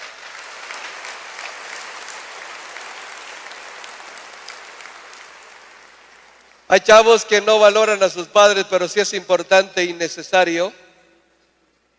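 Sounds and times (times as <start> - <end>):
audience applauding loudly: 0.0 - 6.7
speech: 6.7 - 10.8.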